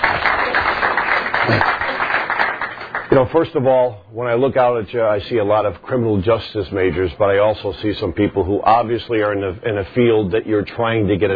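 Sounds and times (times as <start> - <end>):
audience round of applause: 0.0 - 3.3
speech: 1.5 - 1.8, 3.1 - 11.3.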